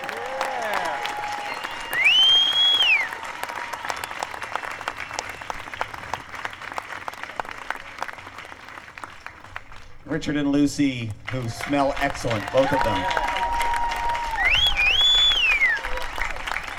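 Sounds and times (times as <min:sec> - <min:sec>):
cheers: 0:00.0 - 0:08.0, 0:11.2 - 0:16.7
audience applauding: 0:00.0 - 0:10.1, 0:10.8 - 0:16.7
shrill whistle: 0:01.3 - 0:03.2, 0:14.4 - 0:15.9
speech: 0:10.1 - 0:13.2.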